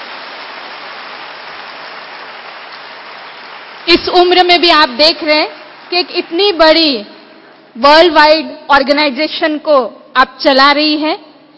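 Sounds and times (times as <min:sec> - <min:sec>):
loud applause from a large crowd: 0:00.0 - 0:07.7
speech: 0:03.9 - 0:07.1, 0:07.8 - 0:11.3.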